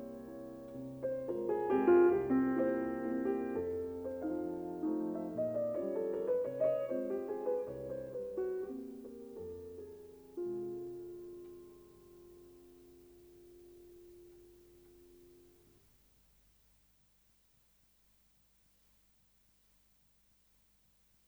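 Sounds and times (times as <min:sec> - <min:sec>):
piano mazurka in F minor: 0:00.0 - 0:15.8.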